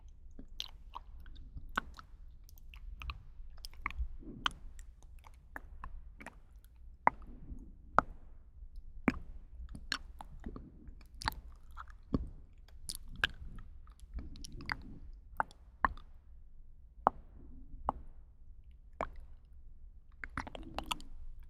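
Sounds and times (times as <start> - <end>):
very close mouth sounds for ASMR: 0.0 - 7.7, 9.1 - 16.1, 20.2 - 21.4.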